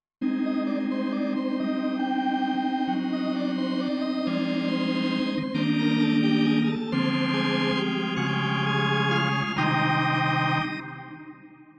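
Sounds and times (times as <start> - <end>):
organ: 0.2 - 11.7.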